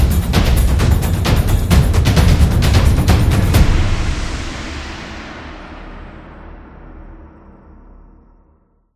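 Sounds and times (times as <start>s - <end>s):
Japanese taiko drums: 0.0s - 5.7s.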